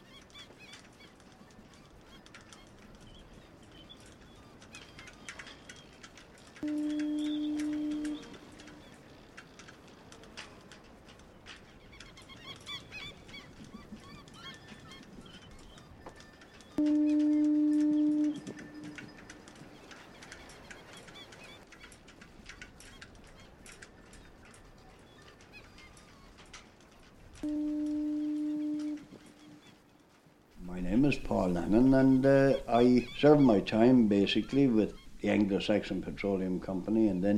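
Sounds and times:
faint bird calls: 0:00.0 - 0:36.9
foghorn on the coast by Church Bay and Myrtleville: 0:06.6 - 0:08.8, 0:16.8 - 0:19.1, 0:27.4 - 0:29.6
speech: 0:31.1 - 0:37.3.

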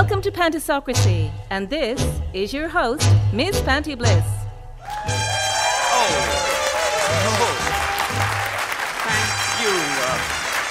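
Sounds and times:
speech: 0:00.2 - 0:05.2
studio audience applause welcoming a show's host: 0:04.8 - 0:10.6.

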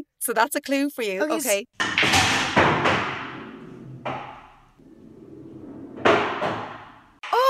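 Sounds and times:
speech: 0:00.2 - 0:02.4
pool balls clacking on a pool table: 0:01.8 - 0:07.3.

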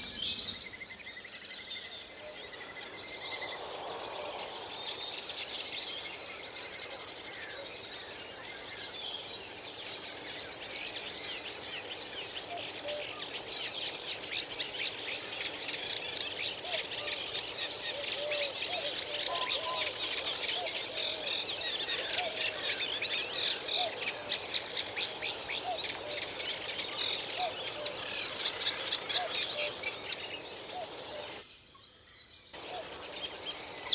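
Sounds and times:
Cetti's warbler singing in a reed bed: 0:00.0 - 0:03.8, 0:04.4 - 0:33.9.

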